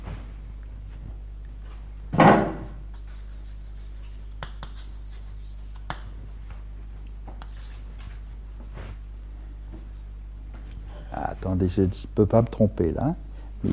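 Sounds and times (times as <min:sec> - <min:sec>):
writing on a board: 0:03.0 - 0:06.0, 0:07.3 - 0:07.8
speech: 0:11.5 - 0:13.7.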